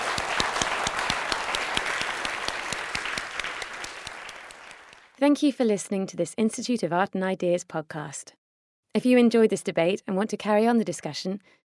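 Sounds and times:
audience applause: 0:00.0 - 0:05.1
speech: 0:05.2 - 0:11.6.

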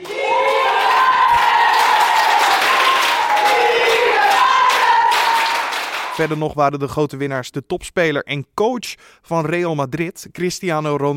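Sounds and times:
excited shouts and cheering: 0:00.0 - 0:06.3
team clapping in dressing room: 0:00.0 - 0:06.4
speech: 0:06.2 - 0:11.1.

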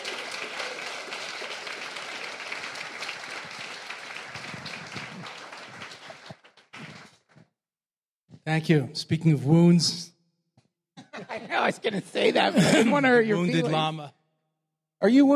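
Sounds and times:
audience applauding a teacher welcomed to the stage: 0:00.0 - 0:07.5
laughter: 0:04.4 - 0:07.0, 0:11.0 - 0:14.0
speech: 0:08.5 - 0:10.1, 0:11.8 - 0:14.2, 0:15.0 - 0:15.3.

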